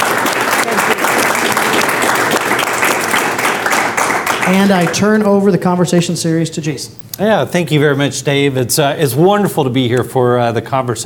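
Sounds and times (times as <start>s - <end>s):
applause: 0.0s - 5.2s
speech: 4.5s - 11.0s.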